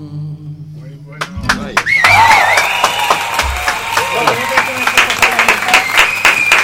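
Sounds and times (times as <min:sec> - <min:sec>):
audience applause: 0:01.5 - 0:06.6.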